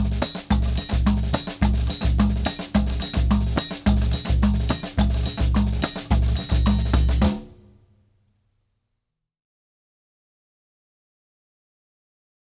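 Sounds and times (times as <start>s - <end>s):
Brazilian baiao rhythm on drum kit: 0.0s - 7.6s.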